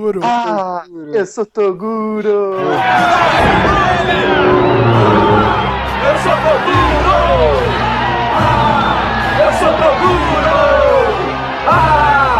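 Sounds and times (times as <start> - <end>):
speech: 0.0 - 7.8
anime crowd cheering for Team Toguro: 2.6 - 12.3.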